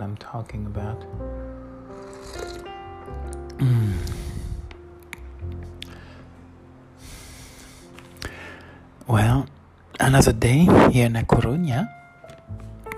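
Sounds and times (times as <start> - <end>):
speech: 0.0 - 2.1, 3.1 - 4.2, 10.1 - 12.0
slurping sip of a drink: 1.9 - 2.7, 3.3 - 4.5
soft breaths: 3.7 - 4.8, 5.8 - 9.0.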